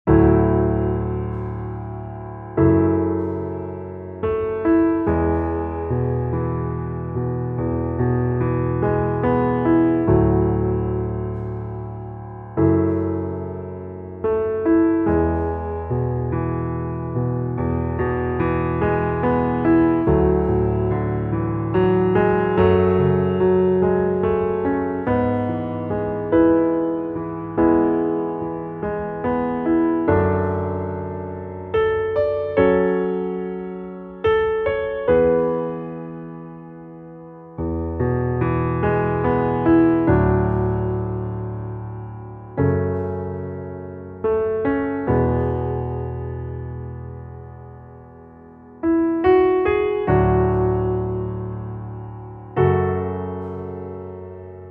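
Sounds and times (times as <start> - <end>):
piano underscore: 0.0 - 54.6.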